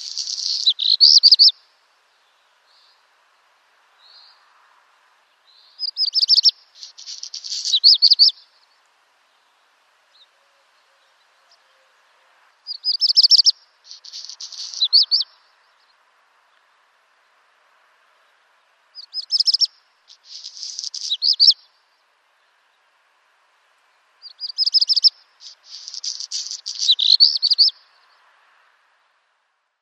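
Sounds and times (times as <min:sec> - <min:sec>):
black redstart singing: 0:00.0 - 0:01.6, 0:05.6 - 0:08.7, 0:12.7 - 0:16.0, 0:19.0 - 0:21.7, 0:24.2 - 0:28.2.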